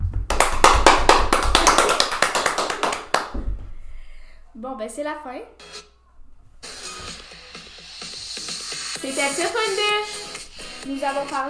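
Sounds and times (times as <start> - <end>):
small group clapping hands: 0.2 - 3.4
speech: 4.7 - 5.8, 9.0 - 10.2, 10.8 - 11.4.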